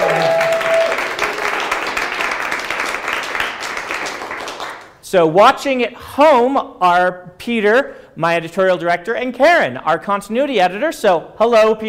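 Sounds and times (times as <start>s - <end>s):
audience applause: 0.0s - 4.9s
speech: 5.1s - 11.8s.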